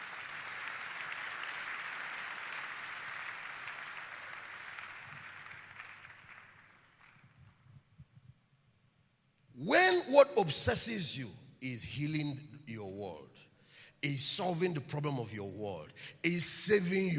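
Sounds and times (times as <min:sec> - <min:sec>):
audience clapping: 0:00.0 - 0:07.6
speech: 0:09.7 - 0:13.4, 0:14.0 - 0:17.1.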